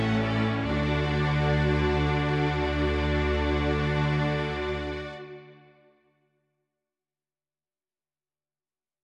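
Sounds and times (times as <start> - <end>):
string orchestra: 0.0 - 6.0.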